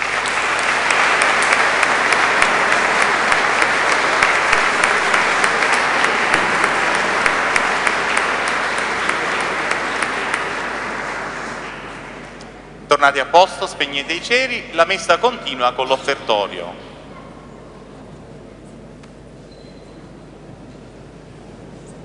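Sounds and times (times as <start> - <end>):
church congregation applauding: 0.0 - 12.4
speech: 13.0 - 16.9.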